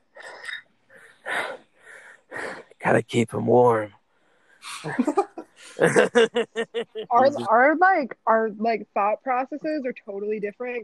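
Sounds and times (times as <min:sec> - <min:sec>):
voice imitating heavy breathing: 0:00.2 - 0:02.8
speech: 0:02.9 - 0:04.0, 0:04.8 - 0:10.8
laughter: 0:04.7 - 0:07.5.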